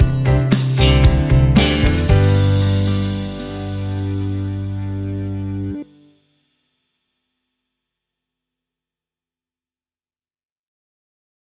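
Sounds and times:
music stinger: 0.0s - 6.4s.

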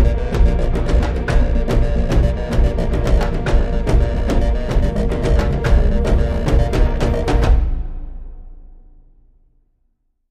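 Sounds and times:
alt percussion: 0.0s - 9.0s.

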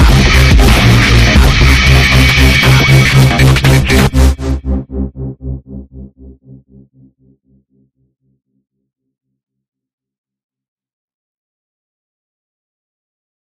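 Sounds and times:
modern digital dubstep stinger: 0.0s - 6.6s.

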